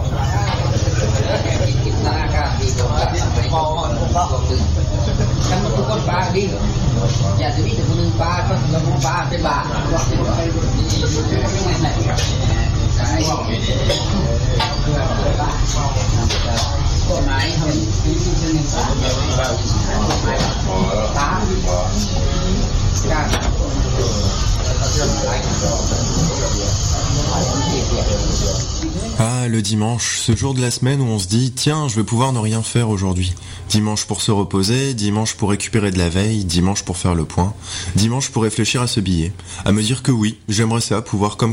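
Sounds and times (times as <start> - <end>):
overlapping chatter at a street food stall: 0.0 - 30.5
speech: 9.0 - 22.2, 23.0 - 41.5
kitchen clatter at a street food stall: 13.8 - 15.0.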